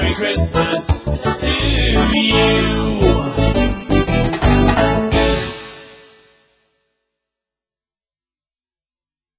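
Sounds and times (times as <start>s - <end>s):
Christmas reggae song: 0.0s - 6.2s.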